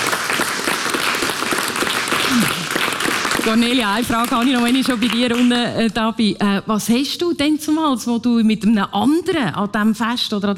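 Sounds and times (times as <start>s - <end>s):
audience applause: 0.0s - 5.6s
speech: 2.3s - 2.6s, 3.4s - 10.5s.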